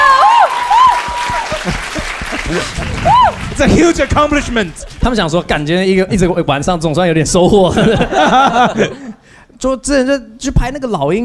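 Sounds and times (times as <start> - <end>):
audience applause: 0.0 - 5.4
laughter: 1.2 - 4.4, 7.4 - 9.2
speech: 3.6 - 11.2.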